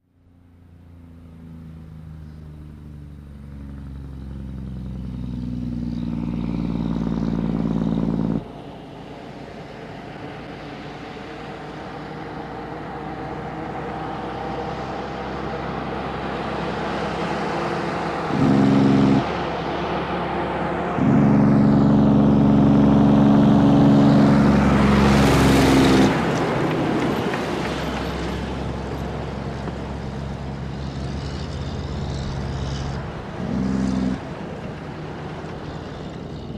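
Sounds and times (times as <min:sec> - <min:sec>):
diesel truck downshifting: 0:04.9 - 0:36.5.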